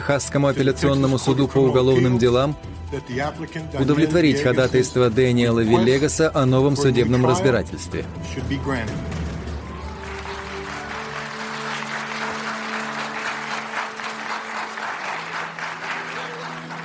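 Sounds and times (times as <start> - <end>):
speech: 0.0 - 9.2
courtroom crowd cheering joyfully: 9.5 - 16.8.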